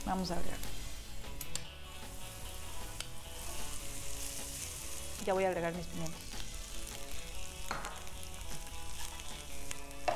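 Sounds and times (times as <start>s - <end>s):
bacon and onion sizzling in hot oil in a pan: 0.0s - 10.1s
speech: 0.1s - 0.8s, 5.2s - 6.2s
crackling pops of hot oil: 0.6s - 1.8s, 2.9s - 3.2s, 6.1s - 10.1s.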